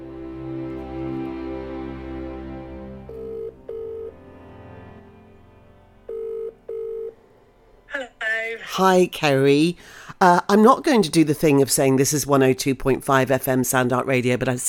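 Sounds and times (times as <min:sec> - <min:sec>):
music: 0:00.0 - 0:07.9
WhatsApp outgoing call ringing tone: 0:03.1 - 0:04.1, 0:06.1 - 0:07.2
speech: 0:08.6 - 0:14.6.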